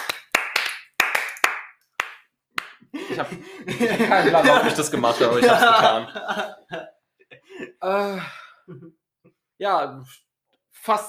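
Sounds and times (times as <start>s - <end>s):
hands clapping: 0.0s - 5.6s
laughter: 2.9s - 8.9s
speech: 3.2s - 6.9s, 7.8s - 8.8s, 9.6s - 11.0s.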